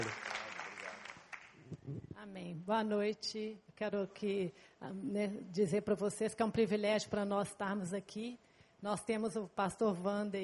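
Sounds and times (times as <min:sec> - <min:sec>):
audience applause: 0:00.0 - 0:01.6
speech: 0:02.3 - 0:10.4.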